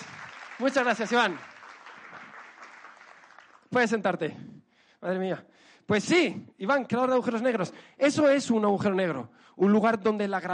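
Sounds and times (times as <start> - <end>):
applause: 0.0 - 4.1
speech: 0.6 - 1.5, 3.7 - 10.5.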